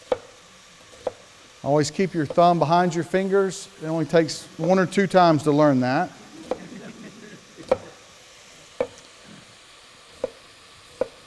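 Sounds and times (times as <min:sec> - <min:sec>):
kitchen knife chopping food on a cutting board: 0:00.0 - 0:01.3, 0:02.3 - 0:02.5, 0:06.4 - 0:06.7, 0:07.6 - 0:08.0, 0:08.8 - 0:09.0, 0:10.2 - 0:10.4, 0:11.0 - 0:11.2
speech: 0:01.6 - 0:06.2
laughter: 0:04.6 - 0:08.2.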